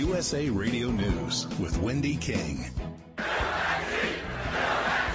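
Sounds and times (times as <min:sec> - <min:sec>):
speech: 0:00.1 - 0:03.0
crowd of supporters chanting in Fayetteville, North Carolina: 0:03.2 - 0:05.1.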